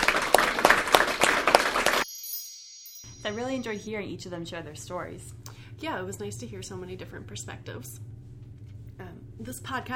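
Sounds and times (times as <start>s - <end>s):
audience applause: 0.0s - 2.0s
speech: 3.3s - 8.1s, 9.0s - 9.9s.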